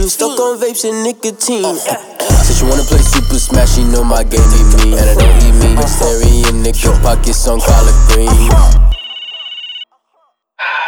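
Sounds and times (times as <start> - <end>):
speech: 0.0 - 8.9
telephone ringing with a warbling electronic tone: 8.9 - 9.9.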